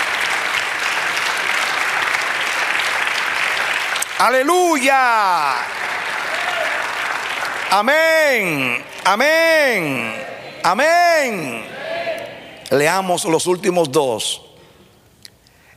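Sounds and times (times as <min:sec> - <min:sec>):
audience applause: 0:00.0 - 0:11.7
speech: 0:04.2 - 0:05.9, 0:07.7 - 0:11.8, 0:12.7 - 0:14.5.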